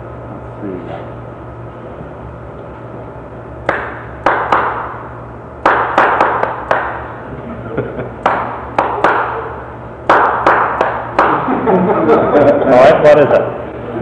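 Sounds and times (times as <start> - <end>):
speech: 0.6 - 1.3
hymn rhythm clapped out by hand: 3.7 - 5.0, 5.6 - 7.1, 8.2 - 11.5
laughter: 7.3 - 8.4, 11.2 - 14.0.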